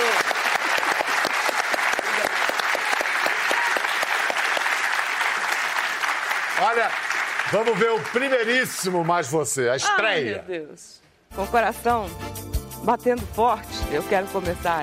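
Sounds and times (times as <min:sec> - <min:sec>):
audience applause: 0:00.0 - 0:09.5
speech: 0:06.8 - 0:14.8.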